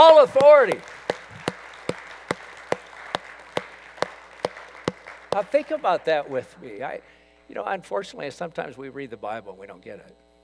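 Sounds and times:
audience clapping in church: 0.0 - 6.4
speech: 0.2 - 1.0, 5.3 - 10.2.

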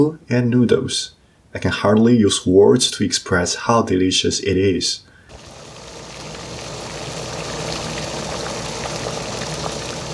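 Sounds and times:
speech: 0.0 - 5.1
hot pot broth boiling: 5.3 - 10.1.

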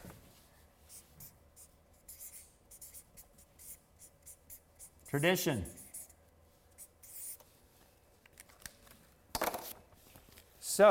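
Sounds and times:
pen writing handwritten notes: 0.9 - 5.2, 6.8 - 7.4
speech: 5.1 - 5.8.

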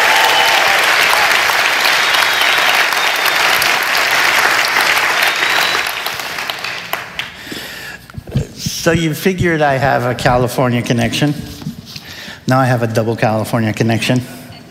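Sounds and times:
church congregation applauding a guest speaker: 0.0 - 7.5
speech: 8.8 - 11.5, 12.5 - 14.4.

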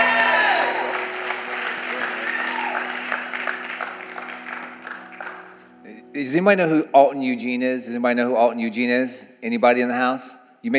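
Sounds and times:
South Florida audience whooping and cheering: 0.0 - 5.5
South Florida audience applause welcoming a speaker: 0.0 - 5.8
speech: 6.2 - 10.7.

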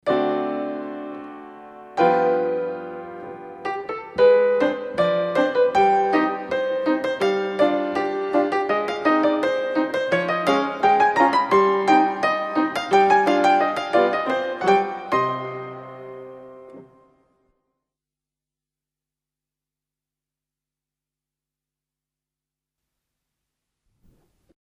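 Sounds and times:
ballet music for echappe saute: 0.0 - 17.2.

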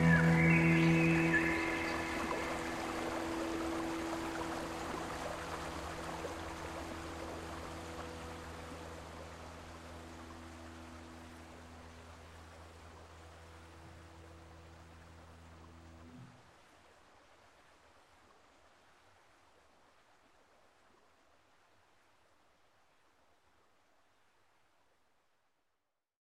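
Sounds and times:
birdsong: 0.0 - 6.0.

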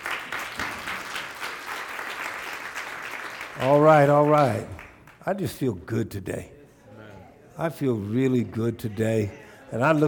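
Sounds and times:
audience clapping hands: 0.0 - 5.4
speech: 3.6 - 6.6, 7.6 - 10.0.

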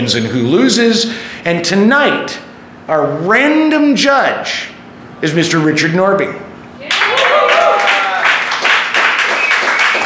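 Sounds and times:
speech: 0.0 - 6.4
audience applause: 6.9 - 10.0.

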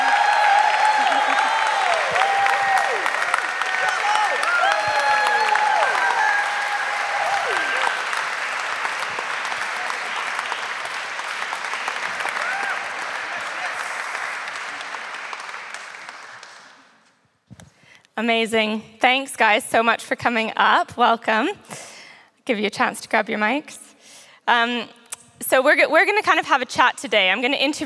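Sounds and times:
audience applause welcoming speakers on stage: 0.0 - 17.0
speech: 18.2 - 21.8, 22.5 - 23.8, 24.5 - 27.8.

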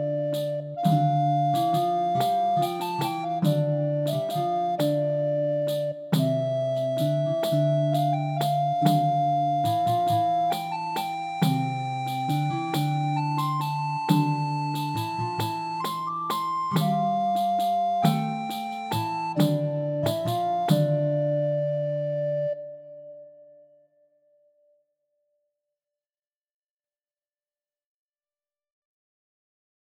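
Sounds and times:
Polish folk music: 0.0 - 22.6.

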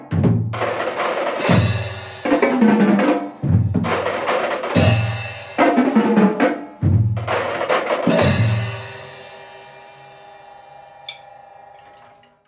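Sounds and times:
drumline playing: 0.0 - 9.0.

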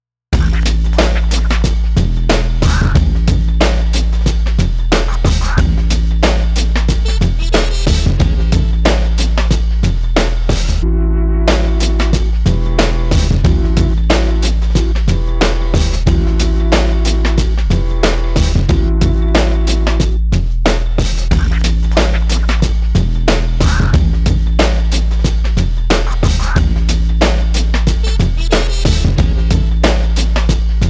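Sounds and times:
edgy percussive chord: 0.4 - 30.8.

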